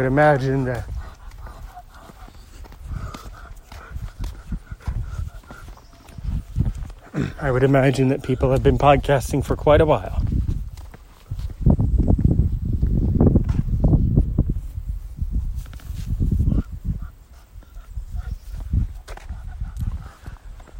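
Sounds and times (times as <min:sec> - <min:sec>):
speech: 0:00.0 - 0:00.9, 0:07.2 - 0:10.2
footsteps on a walk around the neighborhood: 0:00.0 - 0:20.7.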